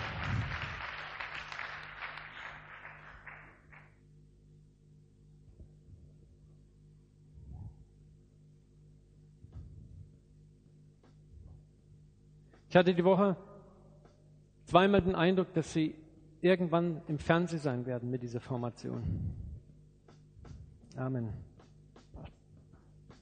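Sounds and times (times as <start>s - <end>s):
audience applause: 0.0s - 3.9s
speech: 12.7s - 13.5s, 14.7s - 19.4s, 21.0s - 21.5s.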